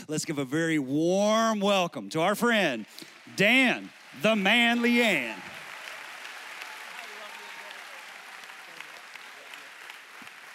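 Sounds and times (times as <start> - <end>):
speech: 0.1 - 5.5
audience applause: 2.4 - 10.5.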